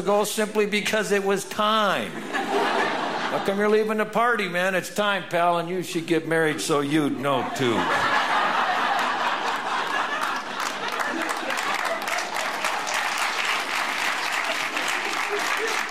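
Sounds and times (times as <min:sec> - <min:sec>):
speech: 0:00.0 - 0:02.6, 0:03.3 - 0:08.1
laughter: 0:02.0 - 0:03.9, 0:06.9 - 0:15.8
audience applauding: 0:08.6 - 0:15.8.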